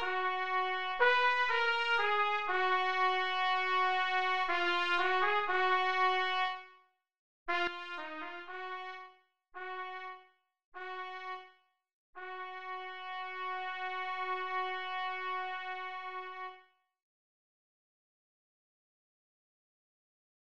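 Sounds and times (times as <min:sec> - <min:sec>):
trumpet: 0:00.0 - 0:06.8, 0:07.5 - 0:11.6, 0:12.2 - 0:16.7.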